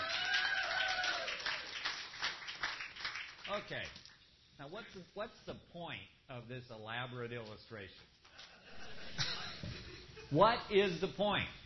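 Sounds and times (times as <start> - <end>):
drawn-out vocal cheer from a church audience: 0.0 - 1.7
scattered claps from a church audience at a service: 0.7 - 4.1
speech: 3.5 - 8.2, 10.3 - 11.6
laughter: 8.4 - 10.4.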